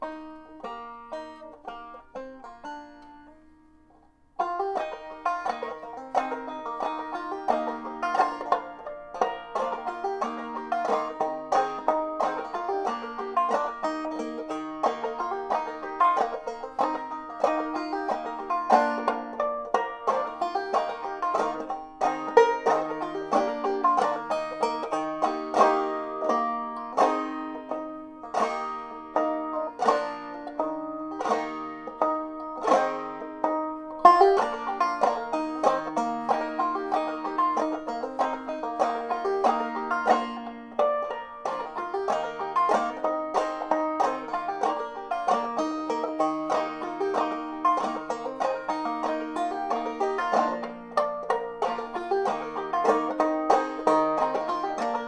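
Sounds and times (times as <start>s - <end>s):
banjo harmonics: 0.0s - 55.0s.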